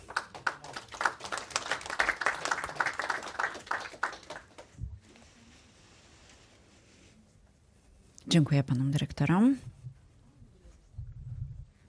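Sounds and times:
audience applause: 0:00.0 - 0:04.8
speech: 0:08.3 - 0:09.7.

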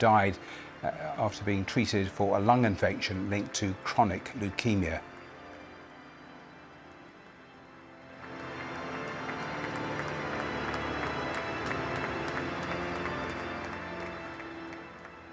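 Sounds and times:
speech: 0:00.0 - 0:05.1
crowd clapping at funeral inside and outside the cathedral: 0:08.2 - 0:15.3.

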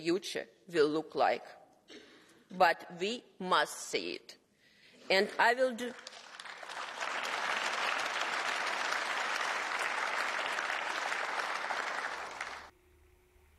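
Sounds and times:
speech: 0:00.0 - 0:04.4, 0:05.1 - 0:06.2
applause from a large audience: 0:05.8 - 0:12.7.

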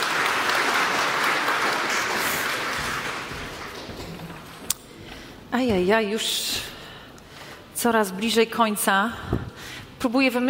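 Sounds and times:
audience applause: 0:00.0 - 0:04.7
speech: 0:05.5 - 0:06.7, 0:07.8 - 0:10.4.

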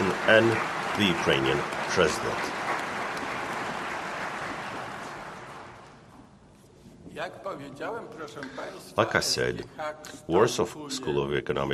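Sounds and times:
crowd applause: 0:00.0 - 0:06.1
speech: 0:00.3 - 0:02.6, 0:07.2 - 0:11.7.

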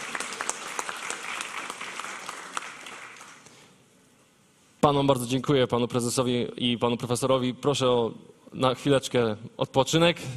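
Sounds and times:
audience applause: 0:00.0 - 0:03.6
speech: 0:04.8 - 0:10.3.

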